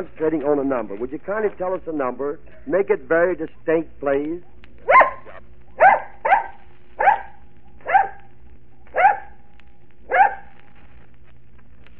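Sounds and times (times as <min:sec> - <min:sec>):
speech: 0:00.0 - 0:05.0
dog barking: 0:04.4 - 0:08.3, 0:08.9 - 0:09.4, 0:10.1 - 0:10.5.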